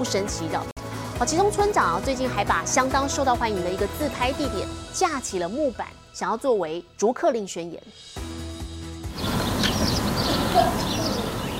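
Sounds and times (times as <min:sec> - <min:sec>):
speech: 0:00.0 - 0:08.2
steady outdoor hiss: 0:08.0 - 0:11.5
birds chirping outdoors: 0:09.1 - 0:11.5.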